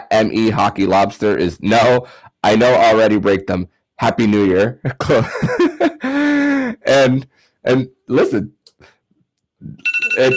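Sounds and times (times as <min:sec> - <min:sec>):
speech: 0:00.2 - 0:08.9, 0:09.6 - 0:10.3
laughter: 0:04.8 - 0:06.8
phone alarm ringing: 0:09.8 - 0:10.3.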